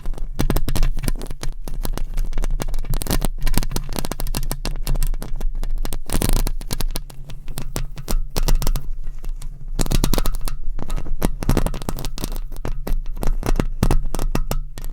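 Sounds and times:
microphone scratching: 0.0 - 14.9.

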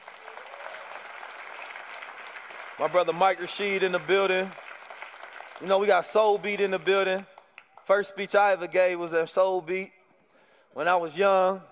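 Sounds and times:
audience applause: 0.0 - 7.0
speech: 2.8 - 4.6, 5.6 - 7.3, 7.9 - 10.0, 10.8 - 11.7.

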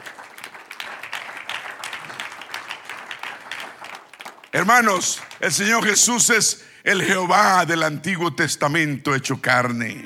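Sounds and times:
audience applause: 0.0 - 6.0
speech: 4.6 - 10.0.

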